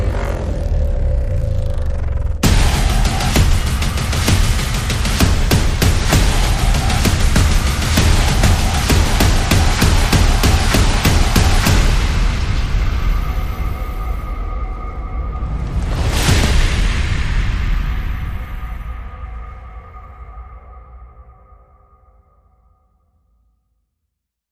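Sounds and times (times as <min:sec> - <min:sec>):
sound effects: 0:00.0 - 0:21.9
drums: 0:02.4 - 0:19.8
percussion: 0:02.4 - 0:22.0.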